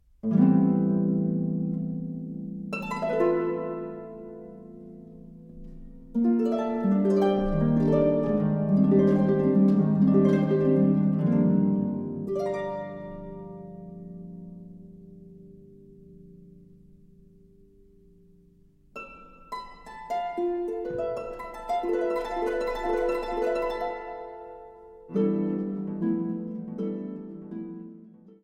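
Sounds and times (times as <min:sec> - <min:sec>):
music: 0:00.0 - 0:28.4.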